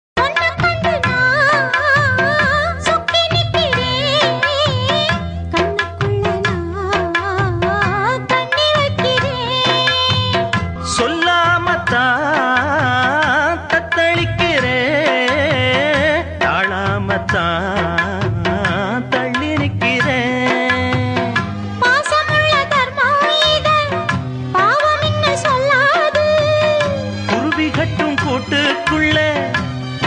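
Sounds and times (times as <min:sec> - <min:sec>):
Tamil song: 0:00.2 - 0:30.0.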